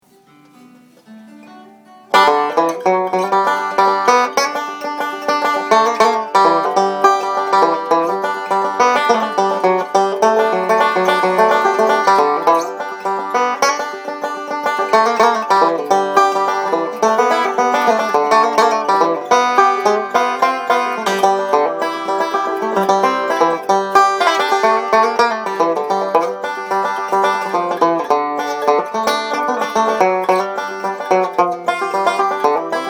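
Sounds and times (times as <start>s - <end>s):
banjo: 0.0s - 32.8s.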